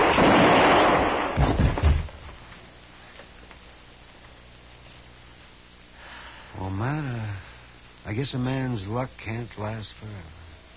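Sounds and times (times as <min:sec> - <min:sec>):
gunshot sound effect in a radio drama: 0:00.0 - 0:02.2
speech: 0:08.2 - 0:10.4.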